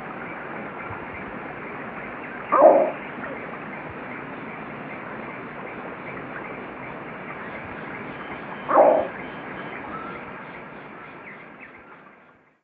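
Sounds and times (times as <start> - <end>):
frog croaking: 2.3 - 3.5, 8.5 - 9.4.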